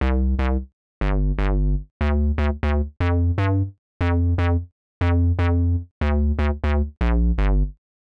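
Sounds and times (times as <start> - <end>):
square bass loop in C, nu jazz house: 0.0 - 7.8.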